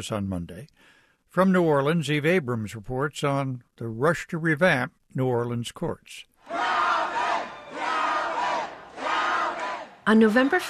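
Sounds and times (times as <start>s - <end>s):
speech: 0.0s - 6.6s, 10.1s - 10.6s
crowd cheering at election night celebration: 6.4s - 10.6s.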